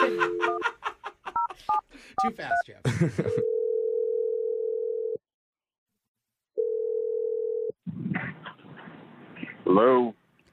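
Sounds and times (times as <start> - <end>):
laughter: 0.0 - 1.7, 2.8 - 3.4
speech: 2.2 - 3.6, 9.8 - 10.2
phone dial tone: 3.4 - 5.2, 6.6 - 7.8.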